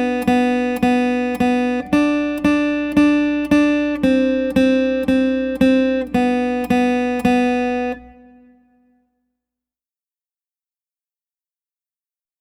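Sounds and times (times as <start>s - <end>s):
B whole, half and quarter notes: 0.0s - 8.5s.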